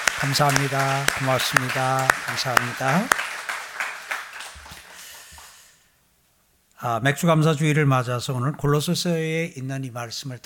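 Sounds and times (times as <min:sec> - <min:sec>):
audience applauding: 0:00.0 - 0:05.8
speech: 0:00.2 - 0:03.2, 0:06.8 - 0:10.4.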